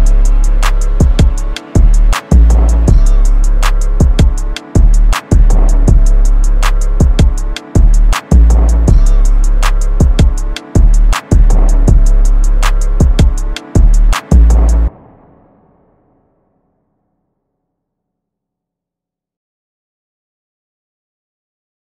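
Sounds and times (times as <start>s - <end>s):
type beat: 0.0s - 14.9s.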